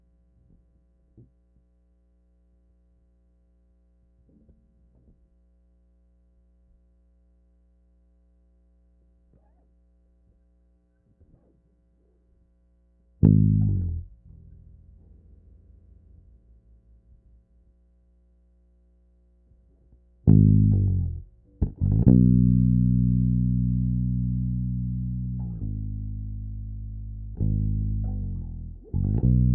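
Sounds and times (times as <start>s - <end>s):
bass takes: 3.7s - 29.5s.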